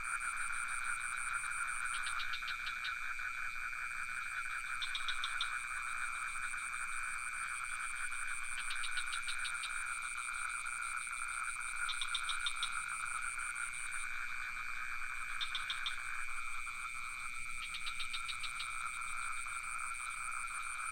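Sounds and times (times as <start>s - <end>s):
crickets trilling: 0.0s - 20.9s
frogs clicking: 0.2s - 20.9s.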